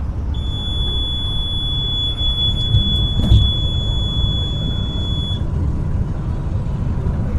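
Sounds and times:
low rumble of a moving vehicle: 0.0s - 7.3s
bus speed-limit alarm high-pitched tone: 0.3s - 5.5s.

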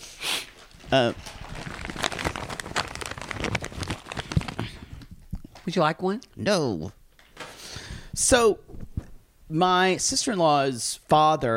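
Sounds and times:
cough drop wrapper being unwrapped, crinkling: 0.5s - 5.6s
speech: 0.9s - 1.3s, 5.7s - 7.0s, 8.2s - 8.7s, 9.5s - 11.5s.

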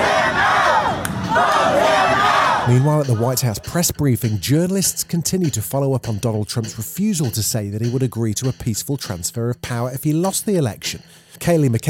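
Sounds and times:
crowd booing and chanting: 0.0s - 3.7s
speech: 2.7s - 11.8s.

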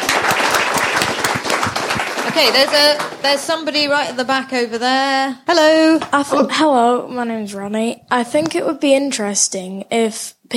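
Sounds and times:
crowd applause: 0.0s - 4.0s
speech: 2.4s - 10.5s.

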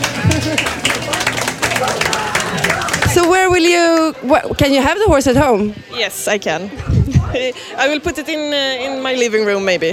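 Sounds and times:
audience applause: 0.0s - 4.2s
speech: 3.6s - 9.9s.

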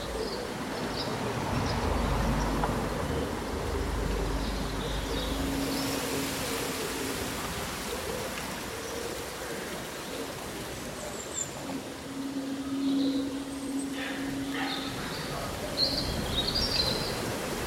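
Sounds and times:
small birds chirping: 0.0s - 17.6s
wind rustling summer leaves: 0.0s - 17.6s.

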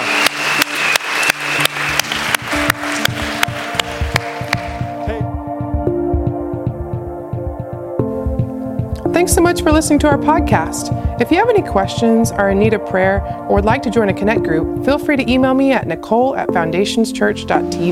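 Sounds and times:
rhythmic hand claps: 0.0s - 12.9s
keyboard music tones: 0.0s - 17.9s
speech: 9.2s - 17.9s.

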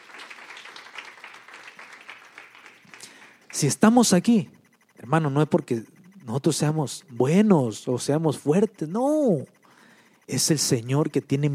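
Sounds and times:
audience applauding: 0.0s - 3.7s
speech: 3.6s - 9.6s, 10.3s - 11.5s.

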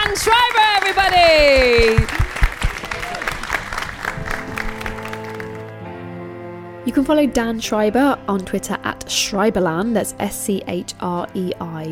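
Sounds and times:
round of applause: 0.0s - 5.8s
speech: 6.9s - 11.8s.

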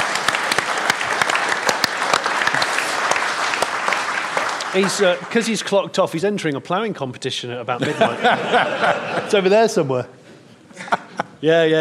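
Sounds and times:
audience applause: 0.0s - 5.8s
speech: 4.7s - 10.2s, 10.8s - 11.7s
laughter: 7.8s - 10.0s, 10.7s - 11.4s.

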